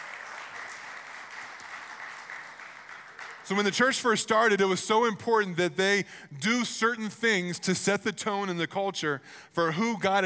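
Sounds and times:
audience clapping: 0:00.0 - 0:05.1
speech: 0:03.5 - 0:10.2.

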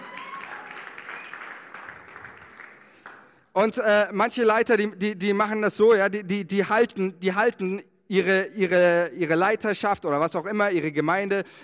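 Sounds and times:
audience applause: 0:00.0 - 0:03.4
speech: 0:03.6 - 0:11.6.

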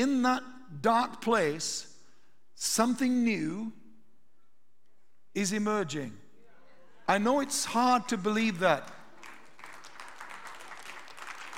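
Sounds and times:
speech: 0:00.0 - 0:01.9, 0:02.6 - 0:03.8, 0:05.4 - 0:06.2, 0:07.1 - 0:09.0
audience applause: 0:09.1 - 0:11.5.

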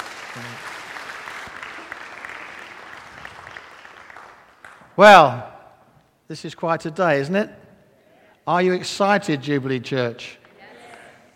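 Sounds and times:
audience applause: 0:00.0 - 0:04.9
speech: 0:00.4 - 0:00.8, 0:05.0 - 0:05.5, 0:06.3 - 0:07.6, 0:08.5 - 0:10.4.

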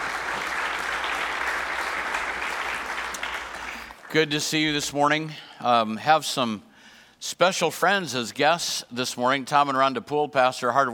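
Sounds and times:
church congregation applauding: 0:00.0 - 0:05.0
speech: 0:04.1 - 0:10.9.

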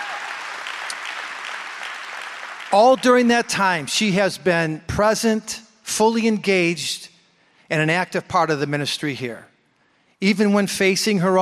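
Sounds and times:
audience clapping: 0:00.0 - 0:03.4
speech: 0:02.7 - 0:07.1, 0:07.7 - 0:09.5, 0:10.2 - 0:11.3.

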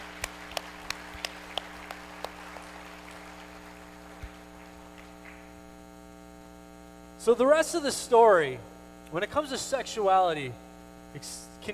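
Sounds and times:
sparse round of applause: 0:00.0 - 0:05.5
speech: 0:07.2 - 0:11.7.

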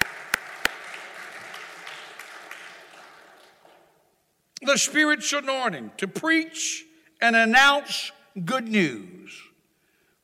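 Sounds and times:
audience clapping: 0:00.0 - 0:04.1
speech: 0:04.6 - 0:09.5.

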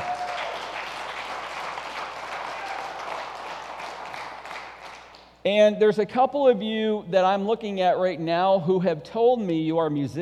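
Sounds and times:
crowd applauding: 0:00.0 - 0:05.3
speech: 0:05.4 - 0:10.2.

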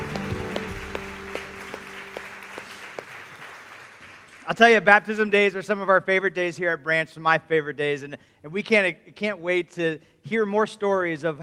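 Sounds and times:
audience applause: 0:00.0 - 0:04.8
speech: 0:04.5 - 0:11.4.

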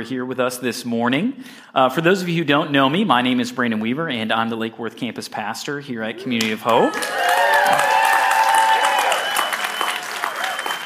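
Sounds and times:
speech: 0:00.0 - 0:07.8
voices cheering and whooping: 0:06.2 - 0:10.8
room full of people clapping: 0:06.3 - 0:10.8.

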